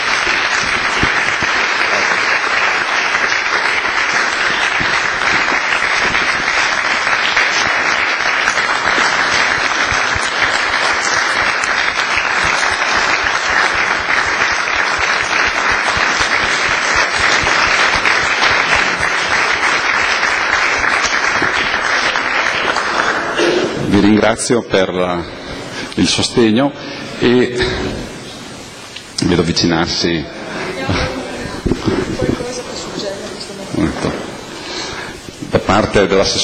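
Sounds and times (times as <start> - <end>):
audience applause: 0.0 - 26.4, 29.5 - 36.4
speech: 24.3 - 25.4, 26.0 - 28.0, 29.3 - 31.2, 35.7 - 36.4.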